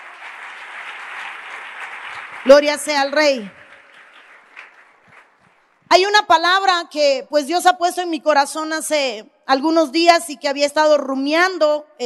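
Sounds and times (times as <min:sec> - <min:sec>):
audience applause: 0:00.0 - 0:05.8
speech: 0:02.4 - 0:03.6, 0:05.9 - 0:12.0.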